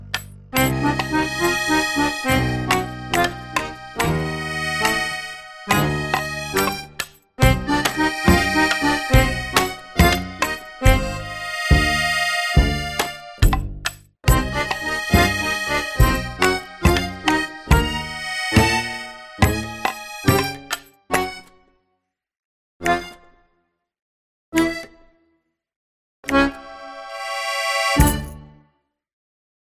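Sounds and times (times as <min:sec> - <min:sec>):
mischievous pirate sneaking music: 0:00.0 - 0:21.5, 0:26.3 - 0:28.4.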